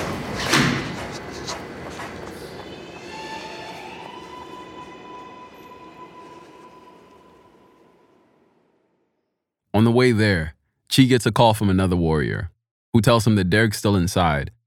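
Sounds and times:
train arriving: 0.0 - 8.9
high metallic squeal: 2.3 - 8.7
speech: 9.9 - 14.6.

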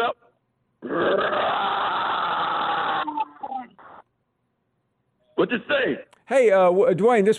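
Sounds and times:
voice imitating a Bengal tiger growl: 0.8 - 3.5
speech: 0.9 - 1.4, 5.4 - 7.3.

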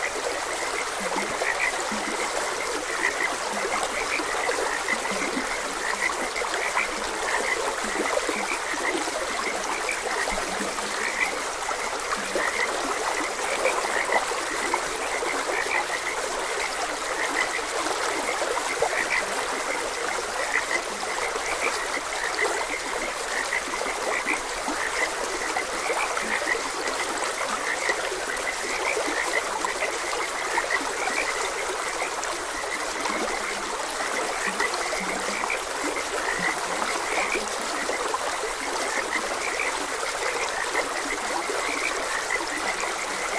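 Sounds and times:
frogs croaking: 0.0 - 43.3
stream water rushing: 0.0 - 43.3.

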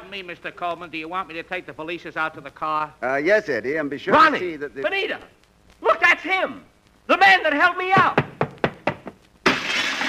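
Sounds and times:
speech: 0.1 - 5.4, 6.2 - 8.4
dull thumps: 7.9 - 9.6
window glass breaking as someone jumps through: 9.4 - 10.0.

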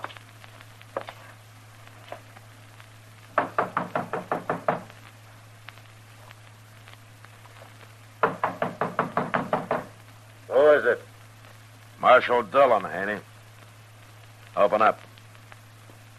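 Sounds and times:
knocking on a door: 3.3 - 4.9, 8.2 - 10.0
speech: 12.1 - 13.3, 14.6 - 15.0.

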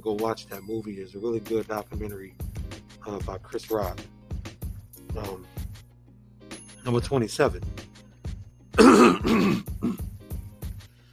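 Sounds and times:
speech: 0.0 - 2.5, 3.1 - 4.2, 5.2 - 5.6, 6.8 - 7.9
throat clearing: 8.8 - 10.1.

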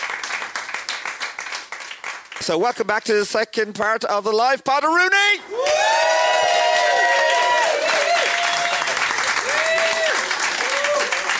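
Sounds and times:
audience applauding at a live show: 0.0 - 2.6, 5.6 - 11.3
speech: 2.4 - 6.1
people whooping: 5.5 - 11.3.

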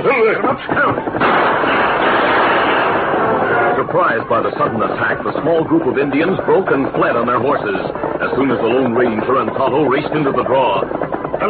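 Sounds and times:
speech: 0.0 - 2.1, 3.8 - 11.4
gunshots: 1.2 - 3.9.

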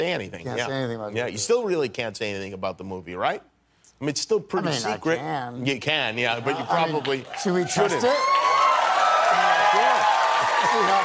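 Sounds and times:
speech: 0.0 - 8.5, 10.8 - 11.0
crowd cheering: 6.2 - 11.0.

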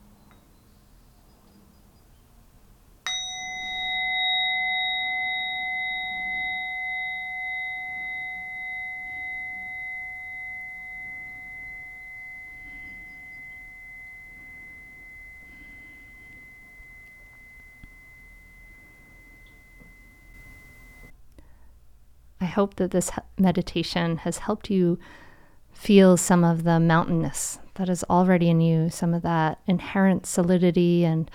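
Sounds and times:
meditation bell ringing to close meditation: 3.1 - 21.1
speech: 22.5 - 25.2, 25.8 - 31.3.

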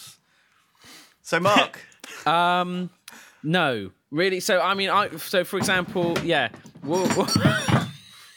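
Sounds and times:
speech: 1.3 - 7.6
solid wooden object knocked over, clattering as it rocks to rest: 5.5 - 8.1.

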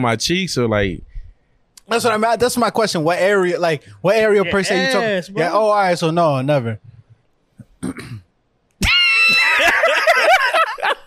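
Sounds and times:
speech: 0.0 - 1.1, 1.9 - 6.9, 7.8 - 8.2
person coughing: 7.8 - 8.3
laughter: 8.8 - 11.0.

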